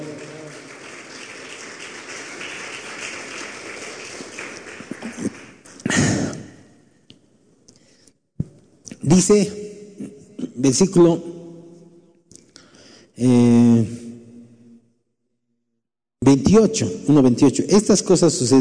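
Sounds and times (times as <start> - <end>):
audience applause: 0.0 - 6.1
speech: 9.1 - 9.6, 10.6 - 11.3, 16.6 - 18.5.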